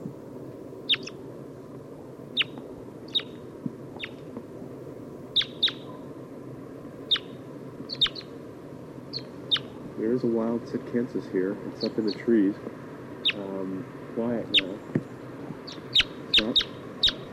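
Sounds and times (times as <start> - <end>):
Red Crossbill flight calls: 0.8 - 1.2, 2.3 - 4.3, 5.3 - 6.2, 7.0 - 8.4, 9.1 - 17.3
speech: 10.2 - 12.8, 13.6 - 15.0.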